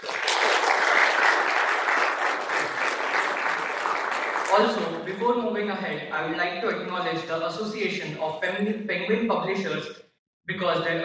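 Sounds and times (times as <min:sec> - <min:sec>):
audience applause: 0:00.0 - 0:05.0
speech: 0:04.6 - 0:11.0.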